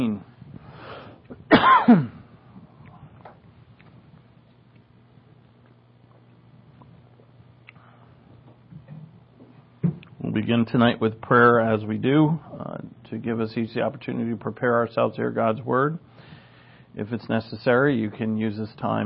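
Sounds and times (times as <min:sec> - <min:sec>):
speaker choking and coughing: 0:01.5 - 0:02.2
speech: 0:01.6 - 0:02.2, 0:10.4 - 0:16.1, 0:17.0 - 0:19.0.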